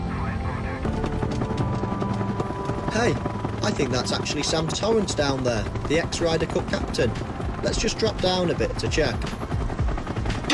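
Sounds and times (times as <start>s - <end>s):
helicopter in flight, rotor chopping: 0.1s - 10.5s
speech: 3.0s - 9.4s.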